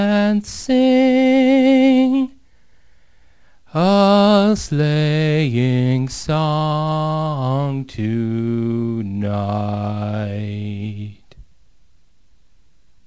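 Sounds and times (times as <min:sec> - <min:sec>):
Christmas song: 0:00.0 - 0:02.4, 0:03.7 - 0:11.3.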